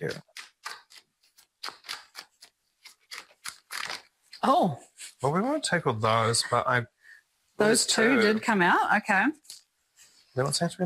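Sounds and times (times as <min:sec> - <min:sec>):
speech: 0:00.0 - 0:00.3, 0:04.4 - 0:07.0, 0:07.6 - 0:09.4, 0:10.4 - 0:10.8
greeting cards handled for ASMR: 0:00.0 - 0:04.4.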